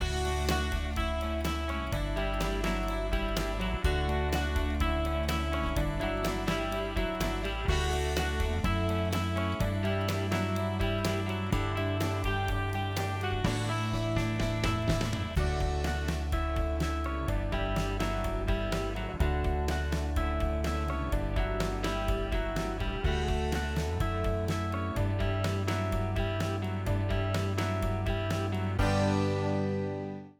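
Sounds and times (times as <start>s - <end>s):
music: 0.0s - 30.3s.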